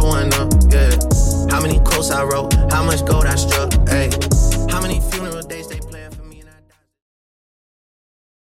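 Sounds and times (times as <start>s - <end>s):
music track at 75 bpm: 0.0s - 6.9s.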